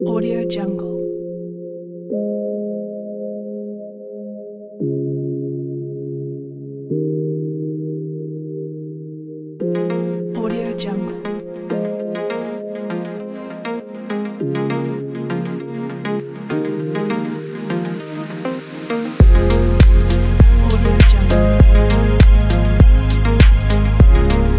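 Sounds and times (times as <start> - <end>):
short technology sound: 16.7 - 24.5.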